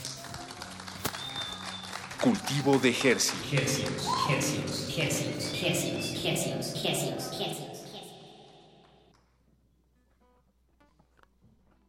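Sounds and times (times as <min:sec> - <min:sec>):
crowd clapping in applause: 0:00.0 - 0:09.1
speech: 0:02.2 - 0:07.7.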